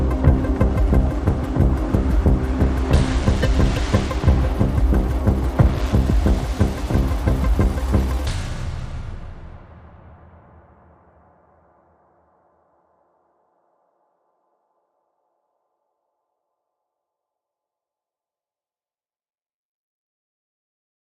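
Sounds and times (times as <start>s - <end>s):
synth without whistle: 0.0s - 9.2s.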